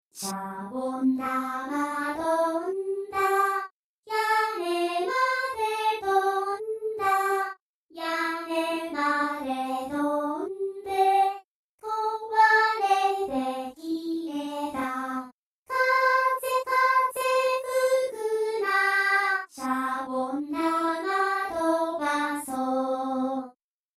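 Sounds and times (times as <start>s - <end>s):
choir singing: 0.2s - 23.6s.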